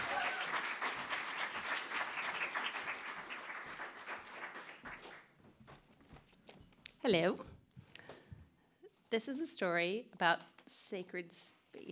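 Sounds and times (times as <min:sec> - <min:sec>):
audience applause: 0:00.0 - 0:05.3
speech: 0:07.0 - 0:07.5, 0:09.1 - 0:11.9.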